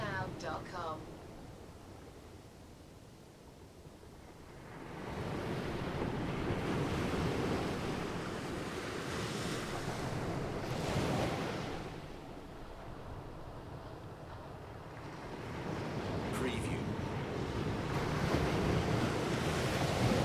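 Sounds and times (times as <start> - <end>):
waves crashing: 0.0 - 2.9, 3.7 - 20.2.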